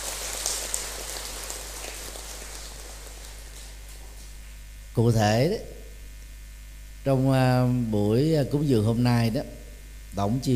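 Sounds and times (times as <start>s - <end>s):
loud crowd applause: 0.0s - 4.1s
speech: 5.0s - 5.7s, 7.0s - 10.5s.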